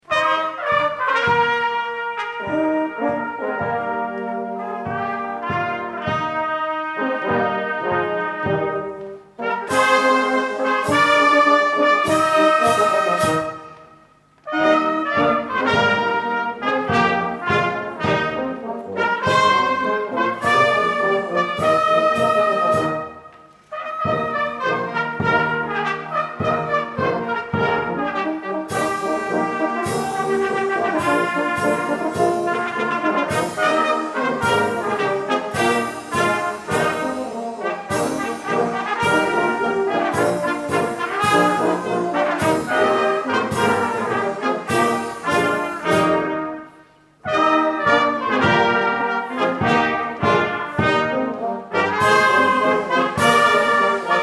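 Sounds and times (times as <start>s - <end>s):
fanfare: 0.0s - 54.2s.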